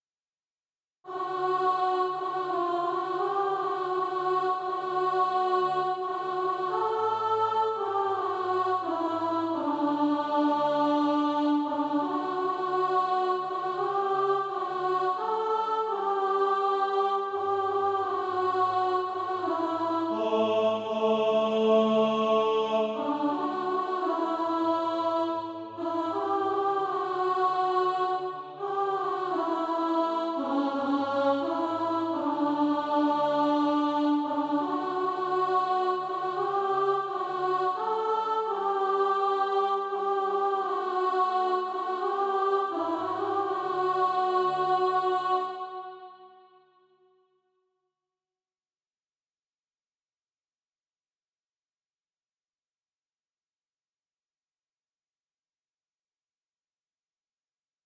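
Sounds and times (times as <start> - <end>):
alto voice singing practice music: 1.1 - 46.4.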